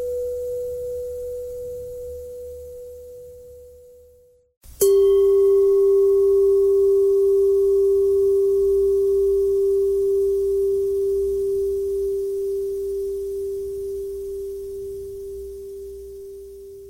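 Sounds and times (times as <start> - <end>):
bell: 0.0 - 12.8.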